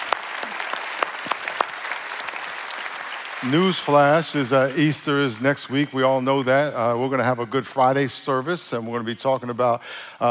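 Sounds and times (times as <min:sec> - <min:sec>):
audience applause at a church service: 0:00.0 - 0:05.0
speech: 0:03.4 - 0:10.2.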